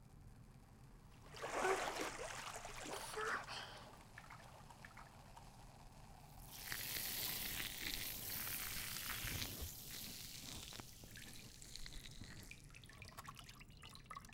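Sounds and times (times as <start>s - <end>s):
bubbly fizzing: 1.2s - 14.3s
soft voice murmuring: 2.8s - 4.0s.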